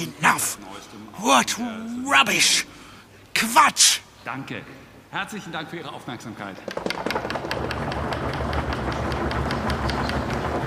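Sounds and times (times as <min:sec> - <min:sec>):
speech: 0:00.0 - 0:02.7, 0:03.4 - 0:07.4
audience banging on desks as applause: 0:06.7 - 0:10.6.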